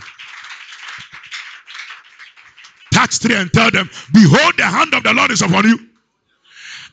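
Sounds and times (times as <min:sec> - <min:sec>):
people clapping hands: 0:00.0 - 0:03.8
speech: 0:03.0 - 0:05.9.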